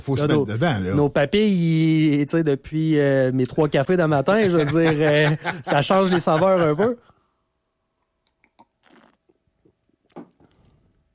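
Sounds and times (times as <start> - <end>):
speech: 0.0 - 7.1
laughter: 4.3 - 7.0
person sipping beer: 8.2 - 11.1.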